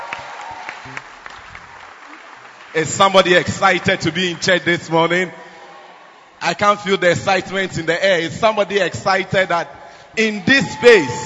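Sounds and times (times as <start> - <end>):
audience hand clapping: 0.0 - 4.2
speech: 2.8 - 5.4, 6.5 - 11.2.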